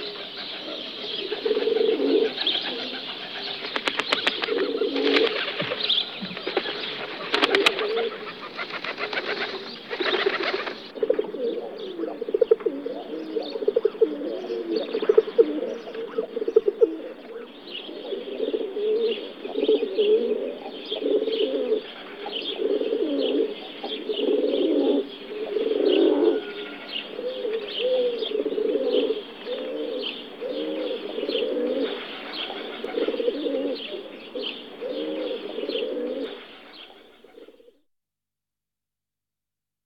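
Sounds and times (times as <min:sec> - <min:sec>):
rock pigeons cooing: 0:00.0 - 0:37.8
pigeon wings fluttering: 0:02.4 - 0:10.9.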